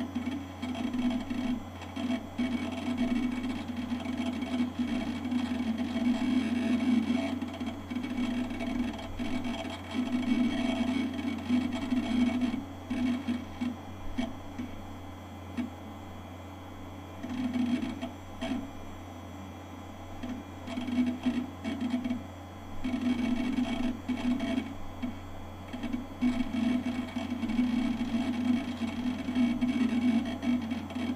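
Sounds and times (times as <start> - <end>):
PC hard drive whir at startup: 0.0 - 31.1.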